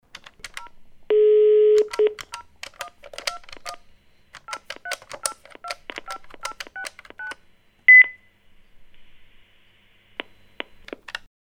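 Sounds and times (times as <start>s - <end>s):
phone sound sequence: 0.6s - 3.8s, 4.4s - 8.3s.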